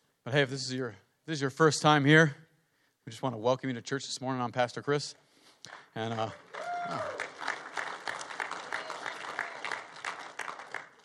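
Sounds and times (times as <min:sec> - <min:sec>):
speech: 0:00.2 - 0:02.4, 0:03.1 - 0:07.2
church congregation clapping during a Sunday morning service: 0:05.6 - 0:11.0.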